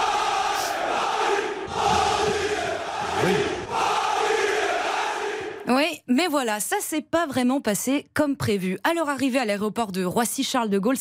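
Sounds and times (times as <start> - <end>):
crowd cheering welcoming PSG players back to Paris: 0.0 - 5.7
speech: 6.1 - 10.9.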